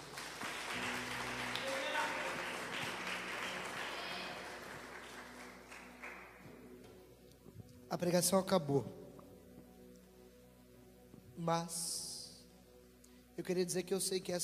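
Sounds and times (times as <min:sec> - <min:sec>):
audience applauding: 0:00.0 - 0:06.5
speech: 0:07.9 - 0:09.0, 0:11.4 - 0:12.0, 0:13.4 - 0:14.4.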